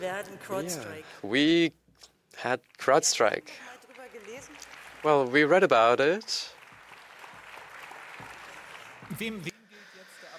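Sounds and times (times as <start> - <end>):
speech: 0.0 - 6.6, 9.1 - 9.6
crowd clapping: 2.7 - 9.5.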